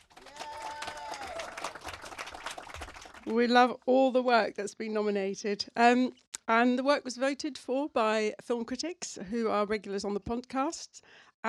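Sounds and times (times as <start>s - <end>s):
audience round of applause: 0.0s - 3.3s
high voice whooping: 0.2s - 1.8s
speech: 3.2s - 11.4s.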